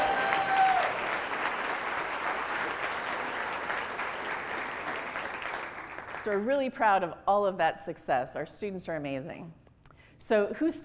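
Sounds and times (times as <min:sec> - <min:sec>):
audience applause: 0:00.0 - 0:06.4
speech: 0:06.2 - 0:09.6, 0:10.2 - 0:10.8.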